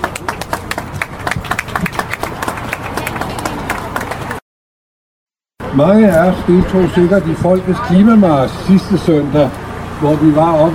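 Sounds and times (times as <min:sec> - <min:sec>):
audience clapping for a speaker: 0:00.0 - 0:04.4
speech: 0:05.8 - 0:10.7.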